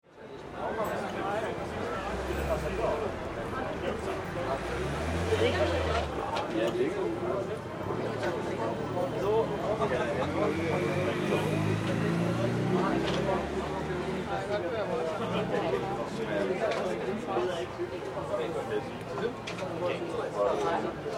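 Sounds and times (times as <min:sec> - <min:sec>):
European cafe street ambience in Denmark: 0:00.0 - 0:21.1.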